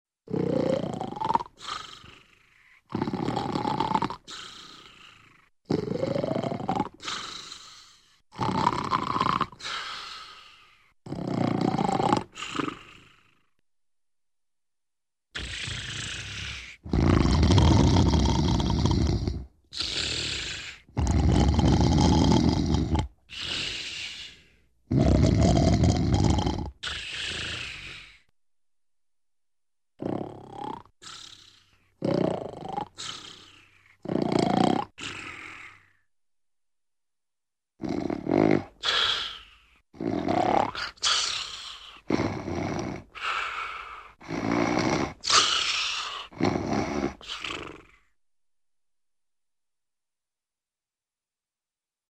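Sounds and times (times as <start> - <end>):
man snoring: 0.3 - 13.5, 15.4 - 28.3, 30.0 - 36.1, 37.8 - 48.1.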